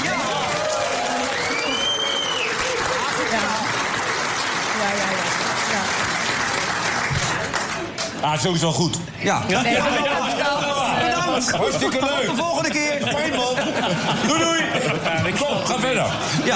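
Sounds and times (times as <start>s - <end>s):
audience applause: 0.0s - 8.2s
speech: 8.3s - 10.6s, 11.4s - 16.5s
laughter: 9.5s - 16.5s.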